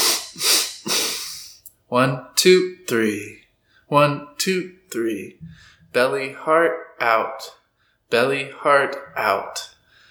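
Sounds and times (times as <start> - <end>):
nasal breathing during a guided breathwork exercise: 0.0 - 1.7, 5.4 - 5.9, 9.8 - 10.1
speech: 1.9 - 9.7.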